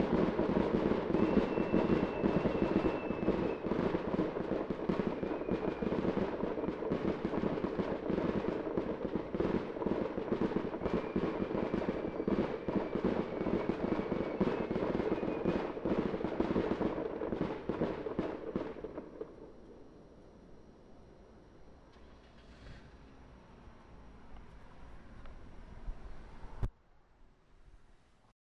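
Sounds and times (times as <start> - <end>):
fireworks finale in Greenfield WI: 0.0 - 19.9.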